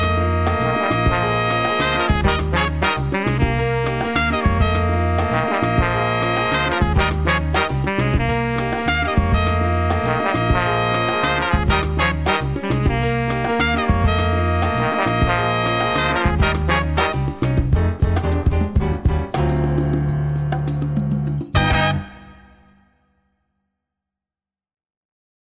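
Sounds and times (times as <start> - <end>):
horns playing: 0.0 - 17.4, 21.6 - 22.8
salsa music: 0.0 - 22.9.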